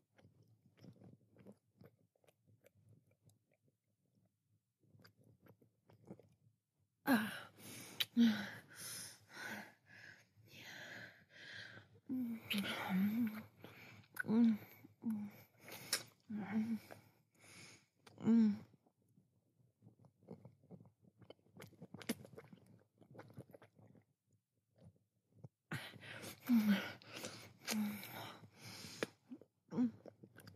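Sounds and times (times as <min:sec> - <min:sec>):
quiet breathy noises: 0:07.1 - 0:18.7, 0:25.7 - 0:30.0.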